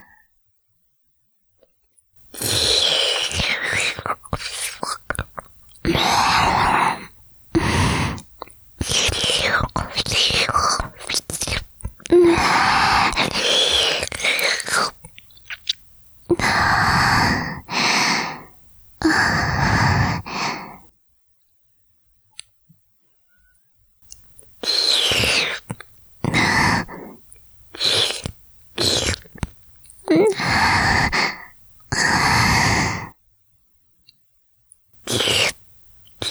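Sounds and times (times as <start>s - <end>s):
ear licking: 2.3s - 20.9s, 24.1s - 33.1s, 35.0s - 36.2s.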